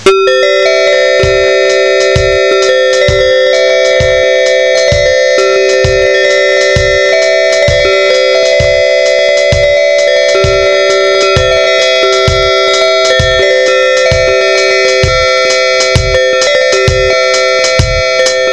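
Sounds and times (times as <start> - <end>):
bells ringing: 0.0 - 18.5.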